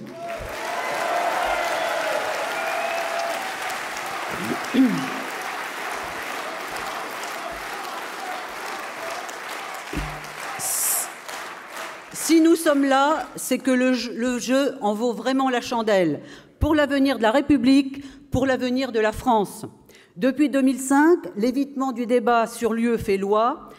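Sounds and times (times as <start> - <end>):
audience applause: 0.0 - 13.4
speech: 4.4 - 5.2, 12.7 - 23.7.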